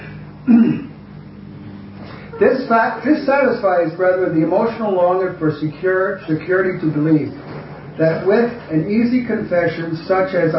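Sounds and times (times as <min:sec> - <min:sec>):
man clearing throat: 0:00.4 - 0:01.0
speech: 0:02.4 - 0:07.4, 0:08.0 - 0:10.5.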